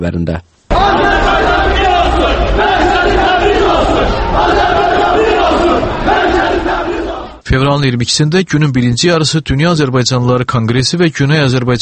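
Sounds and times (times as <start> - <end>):
speech: 0.0 - 1.5, 7.5 - 11.8
protest crowd chanting and shouting outside embassy: 0.7 - 7.4.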